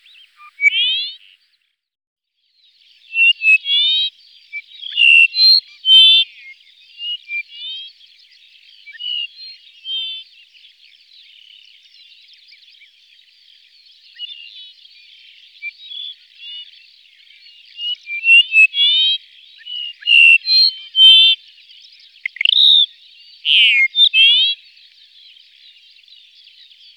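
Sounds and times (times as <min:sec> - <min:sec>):
Dupont's lark calling with nasal whistled notes: 0:00.0 - 0:01.4, 0:03.1 - 0:08.0, 0:14.2 - 0:21.6, 0:22.2 - 0:24.7.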